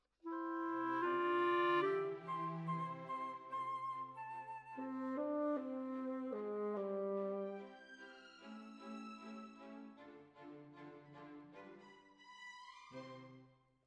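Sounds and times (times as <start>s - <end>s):
clarinet: 0.2s - 7.9s.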